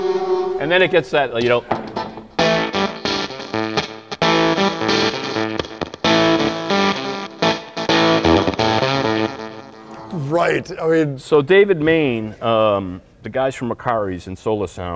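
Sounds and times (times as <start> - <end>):
speech: 0.0 - 1.8, 10.5 - 14.9
electric guitar through a prototype 1965 Mark I Tone Bender fuzz pedal: 1.7 - 10.1.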